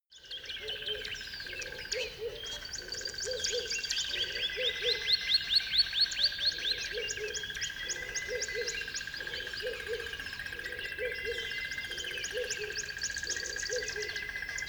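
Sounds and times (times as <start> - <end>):
birds singing at dawn on a river bed: 0.1 - 14.6.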